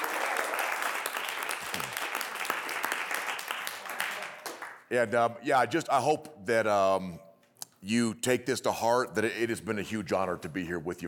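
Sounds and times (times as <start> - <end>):
crowd applause: 0.0 - 4.8
speech: 4.9 - 7.2, 7.8 - 11.0.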